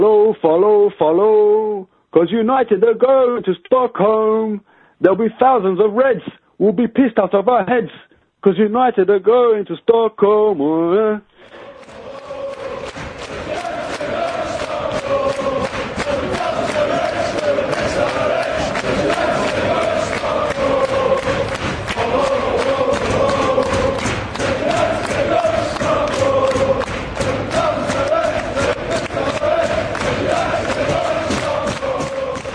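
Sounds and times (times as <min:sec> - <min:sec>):
speech: 0:00.0 - 0:12.0
Manchester United football fans singing in stadium: 0:11.4 - 0:32.5.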